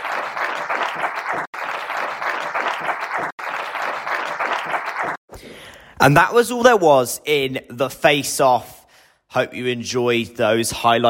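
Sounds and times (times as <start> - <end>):
crowd applause: 0.0 - 5.2
speech: 6.0 - 11.0.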